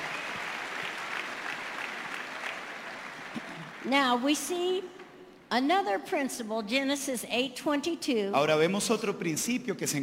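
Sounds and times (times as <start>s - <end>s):
audience applause: 0.0s - 3.9s
speech: 3.8s - 10.0s.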